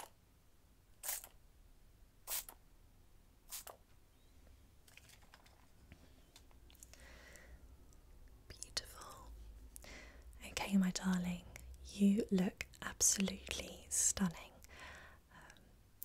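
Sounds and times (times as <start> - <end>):
makeup setting spray spritzed across a face: 1.0 - 1.4, 2.3 - 2.6, 3.5 - 3.8
speech: 12.0 - 13.7, 14.2 - 14.5.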